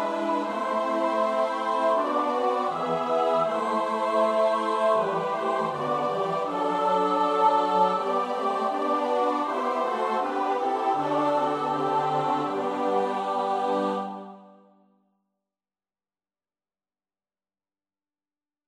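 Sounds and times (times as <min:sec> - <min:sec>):
SATB choir part practice: 0:00.0 - 0:14.8.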